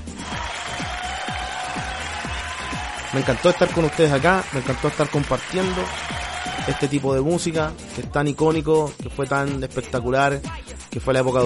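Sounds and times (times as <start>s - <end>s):
crowd applause and cheering: 0.0s - 7.4s
speech: 3.1s - 11.4s.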